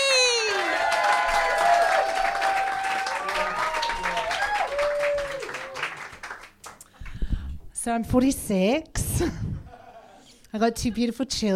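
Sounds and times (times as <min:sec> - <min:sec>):
comedy night audience whoops and shouts: 0:00.0 - 0:06.0
comedy night audience applause: 0:00.4 - 0:06.8
speech: 0:07.9 - 0:09.5, 0:10.5 - 0:11.5.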